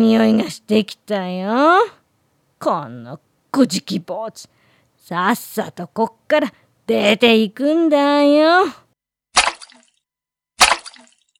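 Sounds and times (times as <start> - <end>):
speech: 0.0 - 2.0, 2.6 - 8.8
water splashed from a ladle out of a bucket: 9.4 - 9.9, 10.6 - 11.3.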